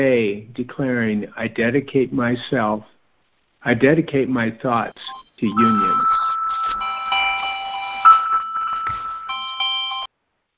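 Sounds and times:
speech: 0.0 - 3.0, 3.6 - 6.3
electronic alarm chime: 5.0 - 10.1.

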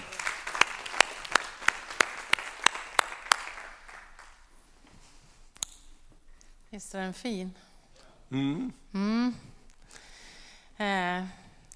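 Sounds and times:
audience applause: 0.0 - 4.5
speech: 6.8 - 7.6, 8.3 - 9.5, 10.8 - 11.4.

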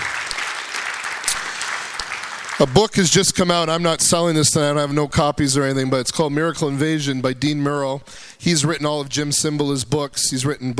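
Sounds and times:
audience clapping: 0.0 - 3.4
speech: 2.6 - 10.7.

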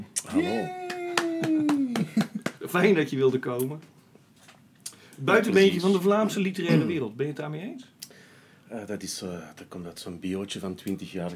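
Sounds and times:
speech: 0.2 - 0.8, 2.7 - 4.0, 5.2 - 7.9, 8.7 - 11.3
laughter: 0.3 - 2.6
audience applause: 0.4 - 2.8.

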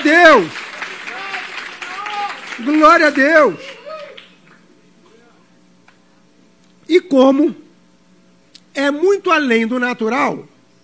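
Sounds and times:
audience applause: 0.0 - 4.6
speech: 0.2 - 0.6, 2.6 - 3.7, 6.9 - 7.6, 8.8 - 10.5.

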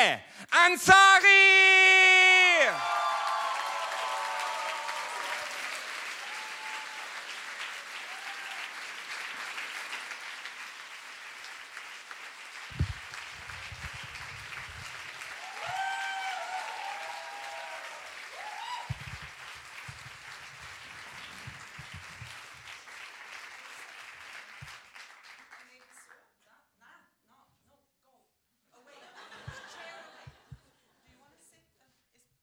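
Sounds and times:
speech: 0.0 - 2.1
audience applause: 2.2 - 25.8
laughter: 28.8 - 31.0.

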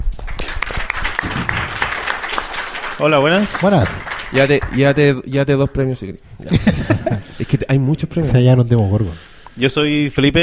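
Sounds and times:
audience applause: 0.0 - 5.4
laughter: 1.2 - 2.4, 6.4 - 7.7
speech: 3.0 - 6.9, 7.7 - 10.4.

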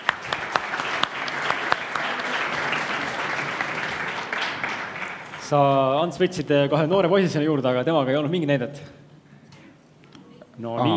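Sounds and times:
audience applause: 0.0 - 6.2
speech: 5.5 - 9.0, 10.6 - 10.9.

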